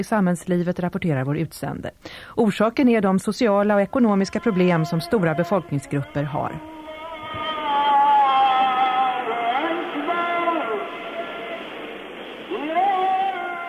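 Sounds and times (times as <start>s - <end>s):
speech: 0.0s - 6.7s
male call to prayer from minaret loudspeaker: 3.6s - 13.6s.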